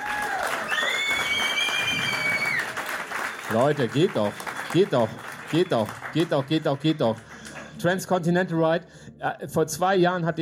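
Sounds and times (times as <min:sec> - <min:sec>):
whistles and cheers: 0:00.0 - 0:03.5
crowd clapping: 0:00.0 - 0:08.2
speech: 0:03.5 - 0:10.4.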